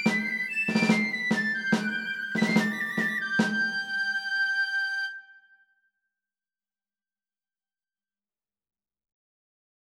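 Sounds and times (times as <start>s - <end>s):
march music: 0.0s - 4.3s.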